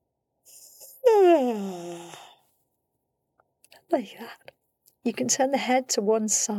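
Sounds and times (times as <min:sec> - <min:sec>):
person yawning: 0:00.5 - 0:02.4
speech: 0:03.9 - 0:06.5.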